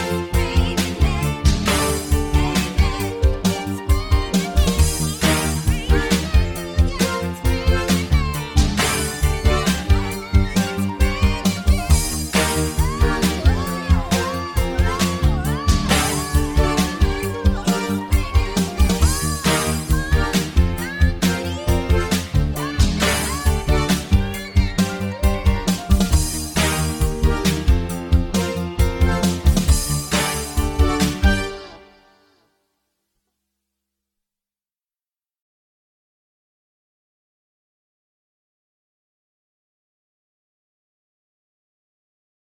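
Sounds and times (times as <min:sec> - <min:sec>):
musical accompaniment: 0:00.0 - 0:32.4.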